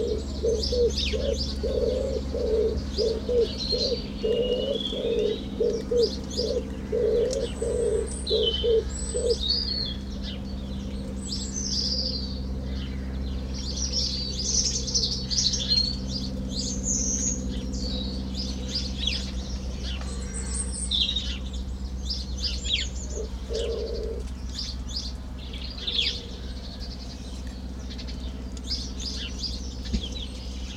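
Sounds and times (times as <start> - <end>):
garden ambience in Suffolk UK: 0.0 - 30.7.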